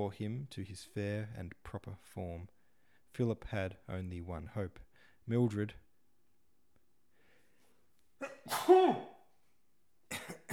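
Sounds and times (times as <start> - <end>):
speech: 0.0 - 5.8, 8.2 - 9.1
person sneezing: 8.2 - 9.2, 10.1 - 10.5.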